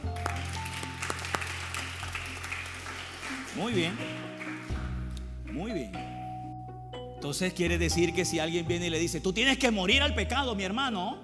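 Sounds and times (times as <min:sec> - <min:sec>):
crowd applauding: 0:00.0 - 0:05.7
speech: 0:03.6 - 0:04.2, 0:05.6 - 0:06.0, 0:07.2 - 0:11.2.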